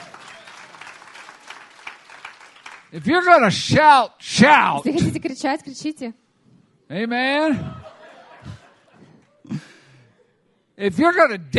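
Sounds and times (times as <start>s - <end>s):
audience clapping: 0.0s - 3.0s
speech: 2.9s - 6.2s, 6.9s - 7.8s, 10.8s - 11.5s
laughter: 7.5s - 9.9s.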